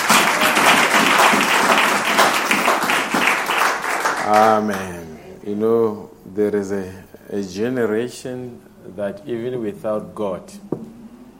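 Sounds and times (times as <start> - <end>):
audience applause: 0.0 - 5.3
speech: 4.3 - 10.7.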